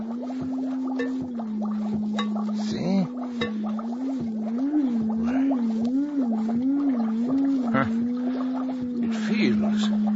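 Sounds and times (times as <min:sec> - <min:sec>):
pulsing warbling tone: 0:00.0 - 0:10.1
steady low electronic hum: 0:00.0 - 0:10.1
taps on a glass jar: 0:01.0 - 0:01.3, 0:02.2 - 0:02.4, 0:03.4 - 0:03.7.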